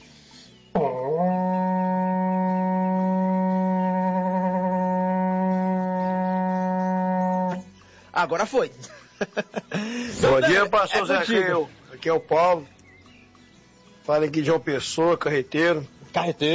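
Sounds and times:
berrante ox horn blaring: 0:00.8 - 0:07.8
speech: 0:08.2 - 0:12.8, 0:14.1 - 0:16.5
laughter: 0:08.8 - 0:10.8.

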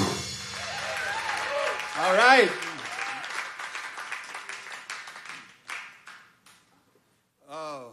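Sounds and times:
crowd applauding: 0:00.4 - 0:06.4
speech: 0:02.0 - 0:02.6.

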